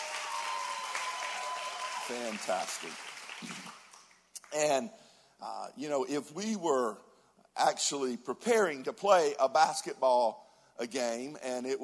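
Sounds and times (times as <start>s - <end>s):
audience applause: 0.0s - 4.2s
speech: 2.1s - 3.8s, 4.5s - 11.8s.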